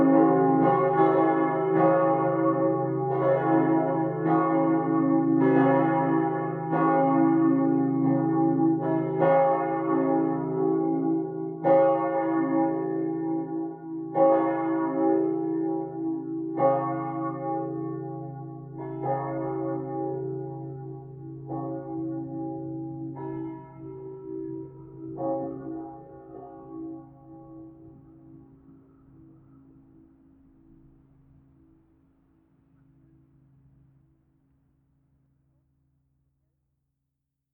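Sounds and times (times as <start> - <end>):
parish church bells ringing: 0.0 - 28.4.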